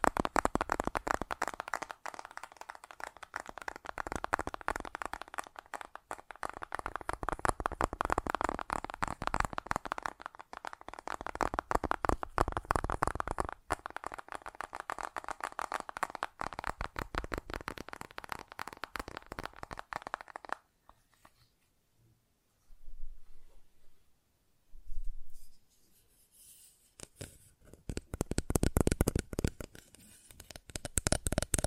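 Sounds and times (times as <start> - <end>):
fast tapping: 0.0 - 20.6, 27.0 - 31.6.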